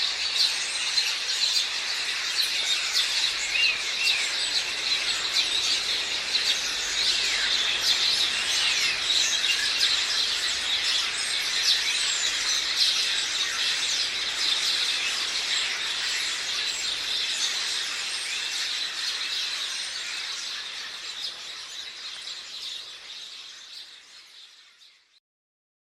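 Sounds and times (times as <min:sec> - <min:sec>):
Passer domesticus house sparrows chirping: 0:00.0 - 0:24.1.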